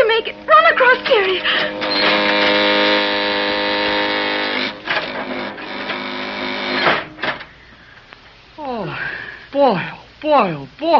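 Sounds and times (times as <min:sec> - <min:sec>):
elevator car coming down its shaft: 0:00.0 - 0:07.5
speech: 0:00.2 - 0:01.8, 0:09.6 - 0:10.9.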